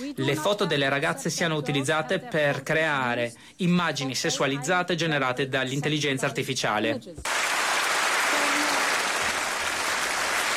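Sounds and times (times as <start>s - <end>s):
speech: 0.1s - 7.6s
applause: 7.2s - 10.5s.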